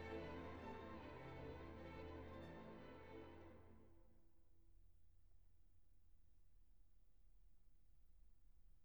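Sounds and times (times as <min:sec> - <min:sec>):
string orchestra: 0:00.0 - 0:04.0.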